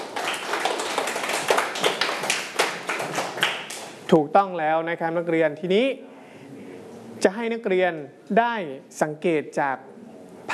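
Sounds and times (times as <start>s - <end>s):
students clapping for themselves: 0.0s - 4.0s
speech: 4.1s - 6.1s, 7.2s - 10.0s.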